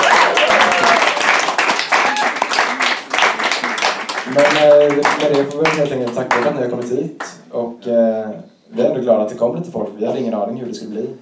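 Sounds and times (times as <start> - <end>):
brief audience applause: 0.0 - 6.6
speech: 4.4 - 11.2.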